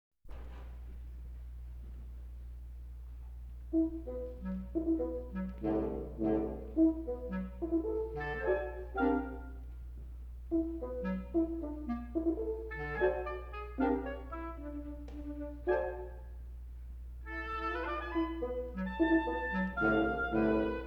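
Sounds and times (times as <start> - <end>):
woodwind quintet playing: 3.7 - 16.6, 17.2 - 20.8.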